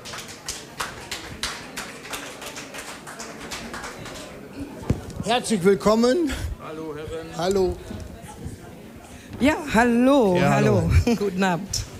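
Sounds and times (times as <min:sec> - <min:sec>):
audience applause: 0:00.0 - 0:04.5
speech: 0:05.3 - 0:06.4, 0:07.4 - 0:07.9, 0:09.4 - 0:11.8.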